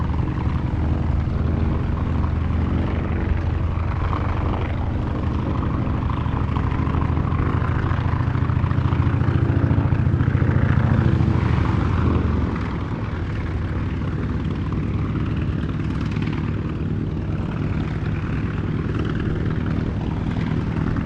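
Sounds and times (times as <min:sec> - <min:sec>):
T-28 Trojan fighter bomber aircraft preflight: 0:00.0 - 0:21.0.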